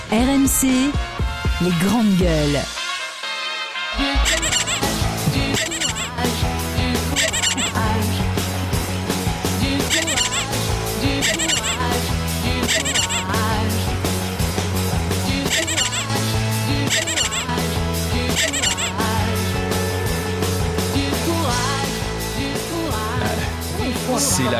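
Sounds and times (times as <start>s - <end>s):
speech: 0.1s - 2.8s, 4.0s - 4.7s, 24.2s - 24.5s
squeaky rubber giraffe toy squeaking: 4.0s - 6.3s, 7.1s - 8.0s, 9.8s - 12.0s, 12.6s - 13.4s, 15.4s - 17.6s, 18.2s - 19.2s
bass-heavy backing: 4.0s - 24.5s.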